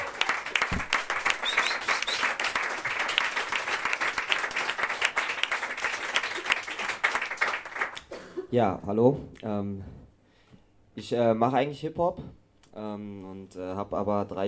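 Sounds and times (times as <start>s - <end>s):
audience applause at an open-mic night: 0.0s - 8.0s
speech: 8.5s - 10.0s, 11.0s - 14.4s.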